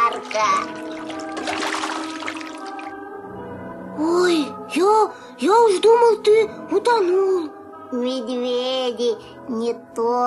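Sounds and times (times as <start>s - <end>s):
water splashing as someone dives in: 0.0s - 3.0s
speech: 0.4s - 0.8s, 4.0s - 4.3s, 5.0s - 10.2s.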